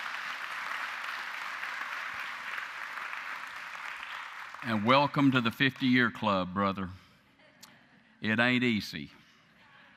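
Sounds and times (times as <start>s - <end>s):
audience applauding: 0.0s - 6.0s
speech: 4.6s - 7.0s, 8.2s - 9.2s.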